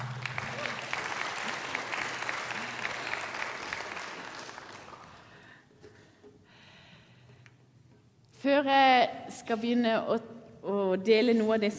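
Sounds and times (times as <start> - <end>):
audience applause: 0.0 - 5.5
speech: 8.5 - 10.2, 11.0 - 11.7.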